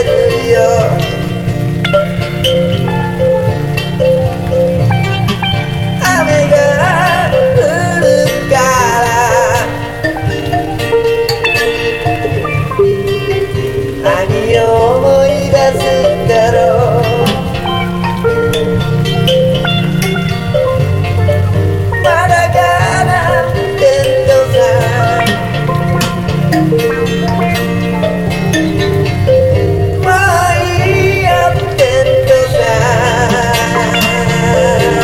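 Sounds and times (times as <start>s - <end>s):
guitar: 0.0s - 35.0s
mbira: 0.0s - 35.0s.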